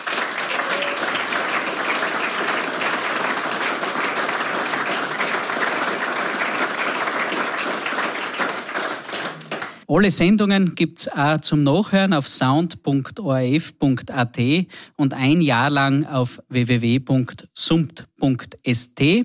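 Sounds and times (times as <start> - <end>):
audience applause: 0.0 - 9.8
speech: 9.9 - 19.2.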